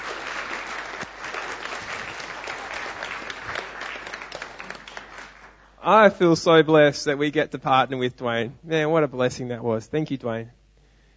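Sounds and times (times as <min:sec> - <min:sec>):
church audience applause: 0:00.0 - 0:05.7
speech: 0:05.8 - 0:10.6.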